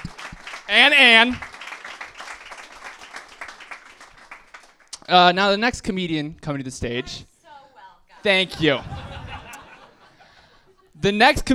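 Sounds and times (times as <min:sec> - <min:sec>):
audience applause: 0:00.0 - 0:04.9
speech: 0:00.7 - 0:01.5, 0:05.1 - 0:07.3, 0:08.2 - 0:09.0, 0:11.0 - 0:11.5
laughter: 0:07.5 - 0:11.0.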